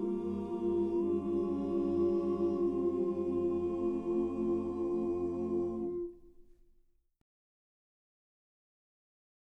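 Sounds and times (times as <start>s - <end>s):
anthem harmony: 0.0s - 6.5s.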